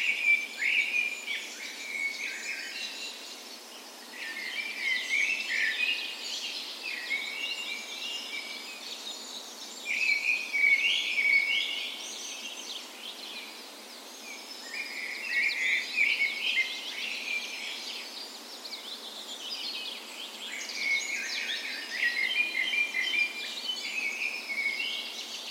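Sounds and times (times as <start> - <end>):
birds dawn chorus: 0.0 - 25.4
faint steady hiss: 0.0 - 25.4.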